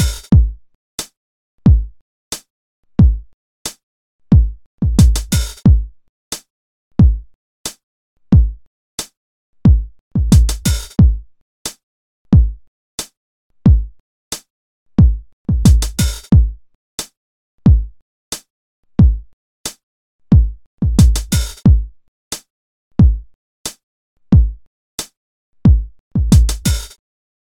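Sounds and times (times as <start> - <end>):
simple beat hi-hat: 0.0 - 0.3, 5.0 - 5.6, 15.7 - 16.3, 26.3 - 27.0
simple beat kick drum: 0.0 - 0.6, 1.7 - 2.0, 3.0 - 3.3, 4.3 - 5.9, 7.0 - 7.3, 8.3 - 8.6, 9.7 - 11.2, 12.3 - 12.6, 13.7 - 14.0, 15.0 - 16.6, 17.7 - 18.0, 19.0 - 19.3, 20.3 - 21.9, 23.0 - 23.3, 24.4 - 24.6, 25.7 - 26.8.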